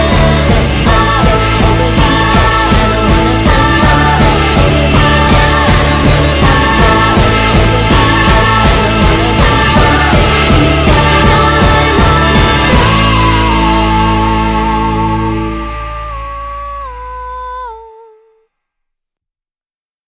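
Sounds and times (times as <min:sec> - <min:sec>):
guitar: 0:00.0 - 0:18.4.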